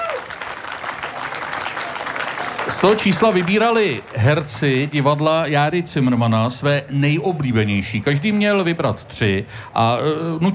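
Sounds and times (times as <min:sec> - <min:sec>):
crowd applause at the Jára Cimrman Theatre's 60th season celebration: 0:00.0 - 0:06.2
speech: 0:02.7 - 0:10.5.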